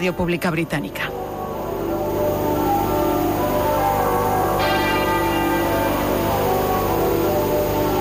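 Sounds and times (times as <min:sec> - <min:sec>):
speech: 0:00.0 - 0:01.3
church bells at Westminster, St Paul's Cathedral and Windsor Castle tolling in unison: 0:01.1 - 0:07.9.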